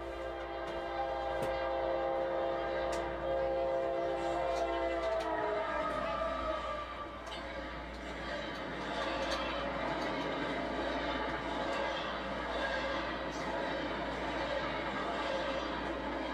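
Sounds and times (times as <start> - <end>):
freight train rolling past on rails: 0.0 - 16.3
clanks and clicks: 7.2 - 13.6.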